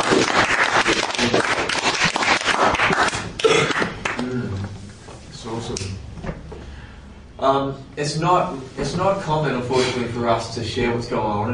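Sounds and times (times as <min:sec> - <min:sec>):
audience clapping: 0:00.0 - 0:04.4
speech: 0:07.5 - 0:11.5.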